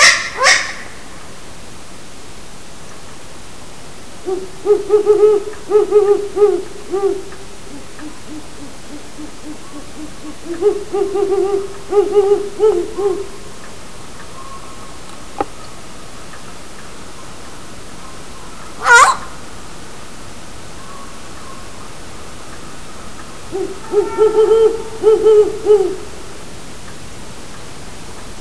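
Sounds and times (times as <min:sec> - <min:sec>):
owl hooting: 0:00.0 - 0:01.0, 0:04.2 - 0:13.6, 0:18.4 - 0:19.4, 0:22.7 - 0:26.3.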